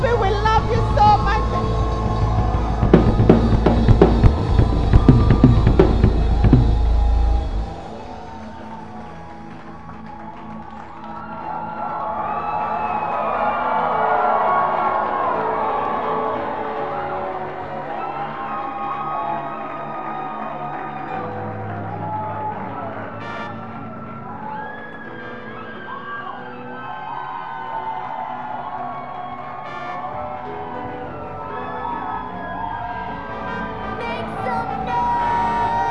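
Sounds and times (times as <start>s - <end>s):
church congregation clapping and cheering to welcome a bishop: 0.0s - 35.9s
sustained tones: 1.4s - 8.0s
deep rumble: 1.5s - 7.9s.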